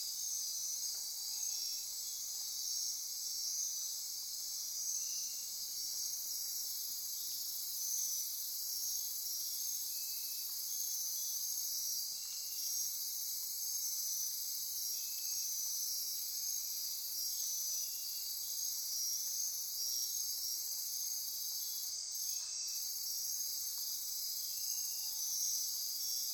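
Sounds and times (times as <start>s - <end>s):
insect chorus buzzing: 0.0s - 26.3s.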